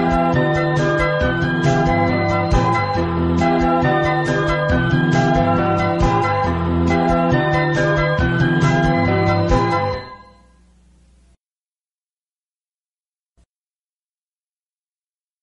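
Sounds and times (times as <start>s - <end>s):
happy instrumental music: 0.0s - 10.5s.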